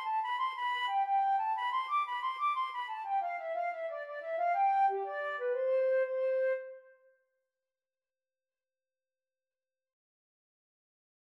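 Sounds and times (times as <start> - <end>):
flute melody: 0.0 - 7.1.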